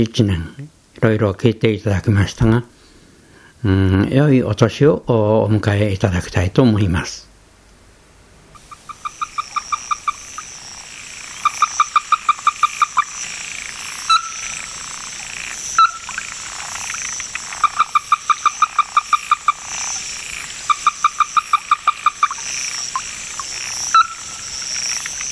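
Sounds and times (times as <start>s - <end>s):
speech: 0.0s - 2.7s, 3.6s - 7.3s
steady high hiss: 8.4s - 25.3s
Ruddy-breasted Crake calling: 8.5s - 25.3s.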